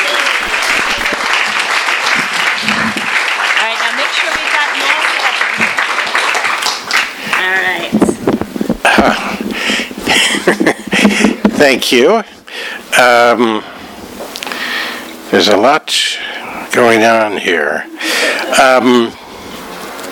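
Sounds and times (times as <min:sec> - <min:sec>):
audience applause: 0:00.0 - 0:07.8, 0:18.0 - 0:19.1
laughter: 0:08.8 - 0:11.6, 0:17.7 - 0:19.2
speech: 0:11.6 - 0:12.4, 0:13.0 - 0:13.7, 0:15.3 - 0:16.1, 0:16.8 - 0:17.9, 0:18.5 - 0:19.2.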